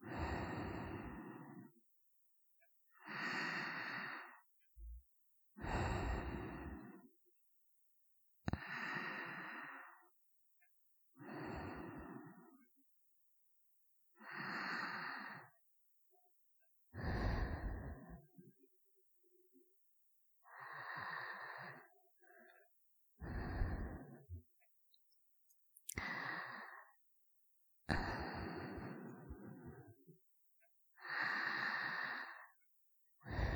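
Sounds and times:
person breathing in sleep: 0.0 - 1.8, 2.9 - 5.0, 5.6 - 7.1, 8.5 - 10.2, 11.2 - 12.6, 14.2 - 15.6, 17.0 - 18.3, 20.4 - 22.6, 23.2 - 24.4, 25.9 - 27.0, 27.9 - 30.0, 31.0 - 32.6, 33.2 - 33.5.

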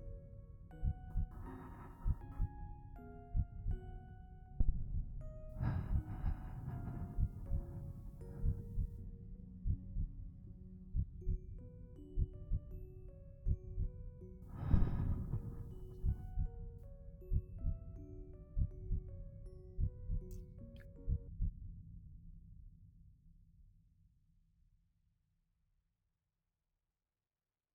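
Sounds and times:
background music: 0.0 - 21.3
heartbeat: 0.8 - 2.5, 4.6 - 9.0, 9.6 - 10.2, 14.5 - 16.5
sleeping breathing: 5.6 - 8.9, 14.5 - 16.3.

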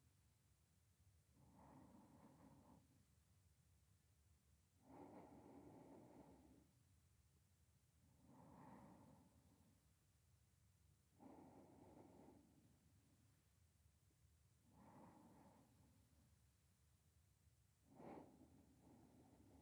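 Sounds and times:
sleeping breath voice beside the listener: 1.4 - 2.9, 4.8 - 6.7, 8.2 - 9.8, 11.2 - 13.1, 14.6 - 16.1, 17.9 - 19.6.

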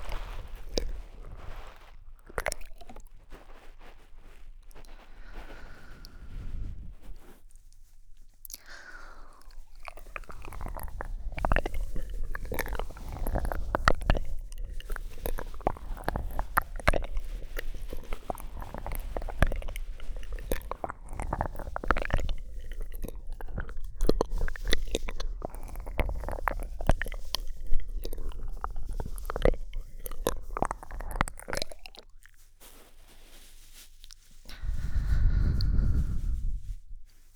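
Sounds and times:
ASMR ear licking sounds: 0.0 - 7.4, 8.4 - 32.3, 34.0 - 37.1
bead cushion rustling ASMR: 0.0 - 8.4, 32.1 - 37.3.

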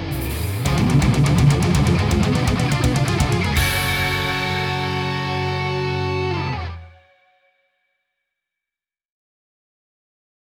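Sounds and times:
off vocal instrumental music: 0.1 - 7.1.

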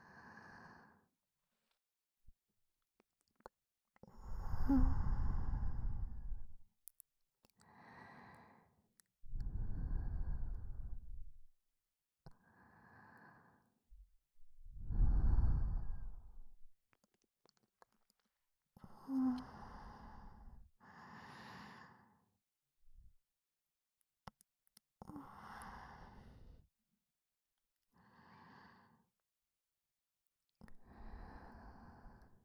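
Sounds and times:
breathing in the left ear: 0.0 - 1.1, 4.1 - 6.6, 7.6 - 11.3, 12.3 - 13.9, 14.7 - 16.4, 18.8 - 22.3, 25.0 - 26.6, 28.0 - 29.2, 30.7 - 32.4.

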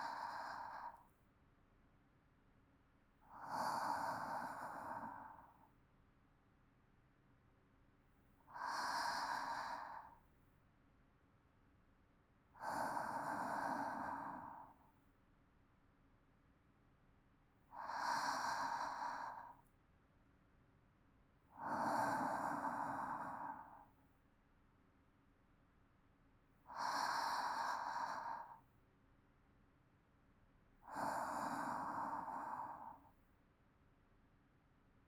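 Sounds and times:
calm sleep breathing: 0.0 - 1.2, 3.2 - 5.7, 8.5 - 10.4, 12.6 - 15.0, 17.7 - 19.7, 21.5 - 24.0, 26.6 - 28.8, 30.8 - 33.3.

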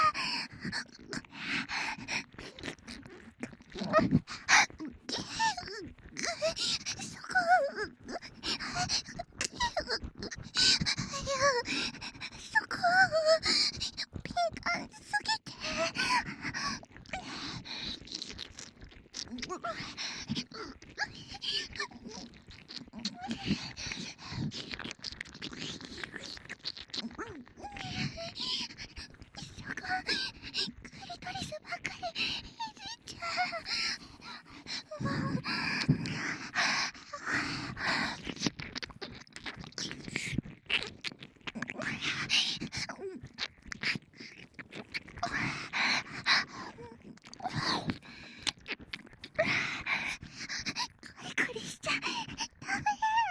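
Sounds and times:
ear licking: 0.1 - 53.2.

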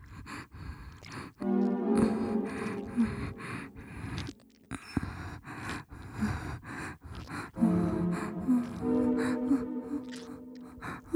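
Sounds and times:
soundtrack music: 1.4 - 4.5, 7.6 - 11.1.

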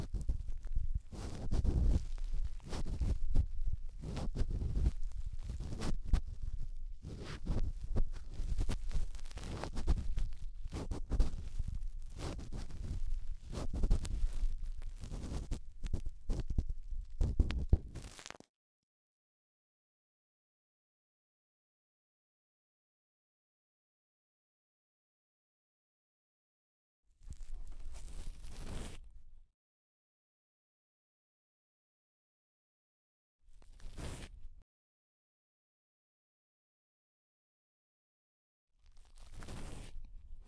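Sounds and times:
cotton swab rubbing deep inside the right ear: 0.1 - 18.3.

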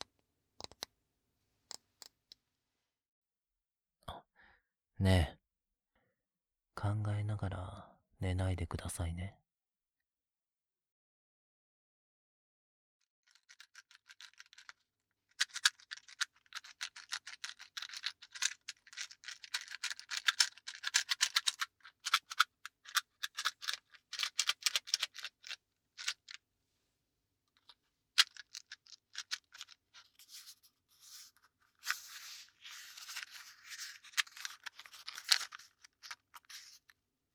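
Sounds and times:
speech: 5.0 - 5.4, 6.8 - 9.4
matchbox full of matches rattling: 13.3 - 26.4, 27.6 - 37.3.

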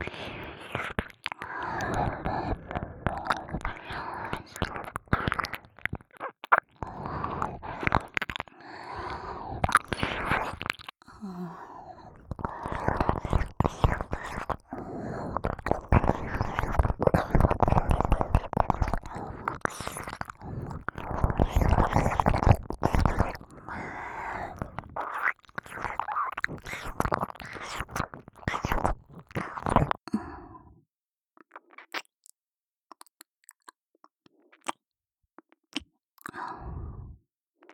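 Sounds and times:
ear licking ASMR in right ear: 0.3 - 10.9, 12.2 - 30.0.

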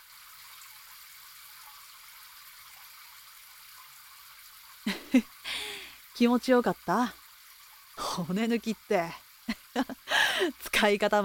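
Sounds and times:
shower water spraying: 4.8 - 7.2, 7.8 - 11.2
speech: 4.9 - 5.3, 6.2 - 7.2, 8.2 - 11.2.

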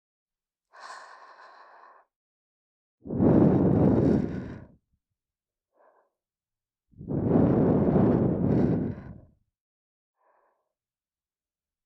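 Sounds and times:
soft breath blown into the ear: 0.7 - 2.2, 3.1 - 4.8, 5.7 - 6.3, 7.1 - 9.4, 10.2 - 10.8.

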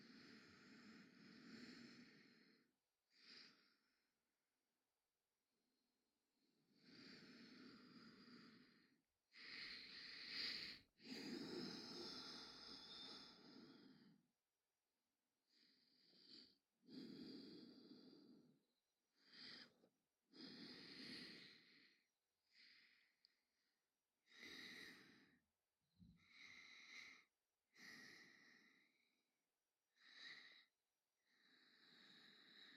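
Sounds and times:
sleeping breath: 0.0 - 4.0, 6.8 - 14.3, 15.5 - 18.6, 19.2 - 23.2, 24.2 - 25.4, 26.1 - 29.1, 29.9 - 32.7.

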